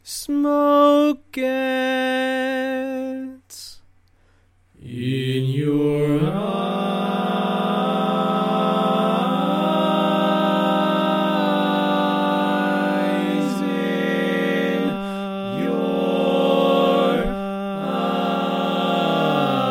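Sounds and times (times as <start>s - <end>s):
barbershop tags sung by all parts: 0.0s - 3.8s, 4.8s - 19.6s.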